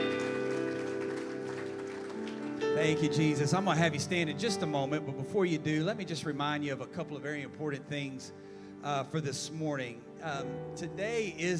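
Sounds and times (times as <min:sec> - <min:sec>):
audience hand clapping: 0:00.0 - 0:03.1
sustained organ-like chords: 0:00.0 - 0:11.5
speech: 0:02.8 - 0:11.5.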